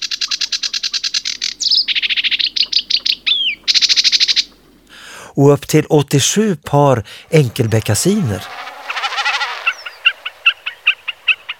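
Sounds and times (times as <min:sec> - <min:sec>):
sedge warbler singing: 0:00.0 - 0:04.9, 0:07.2 - 0:11.5
speech: 0:05.4 - 0:08.6.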